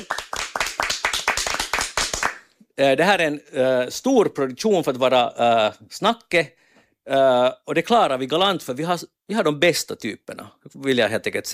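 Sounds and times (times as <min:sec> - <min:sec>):
audience clapping for a technician at a live Swedish stage production: 0:00.0 - 0:02.5
speech: 0:02.8 - 0:11.5.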